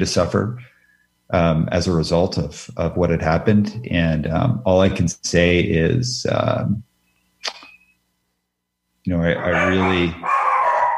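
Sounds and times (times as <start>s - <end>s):
speech: 0.0s - 0.7s, 1.3s - 7.6s, 9.0s - 10.3s
dog barking: 9.4s - 10.9s.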